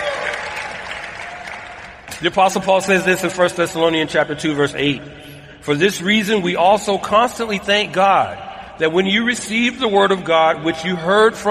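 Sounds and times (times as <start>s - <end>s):
audience applause: 0.0s - 2.1s
speech: 2.2s - 11.4s.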